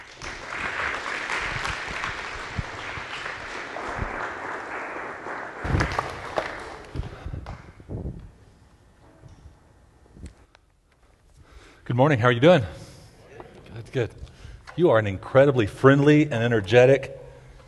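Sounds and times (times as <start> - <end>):
church congregation applauding to welcome a guest: 0.0 - 7.6
speech: 12.0 - 12.8, 14.0 - 17.2.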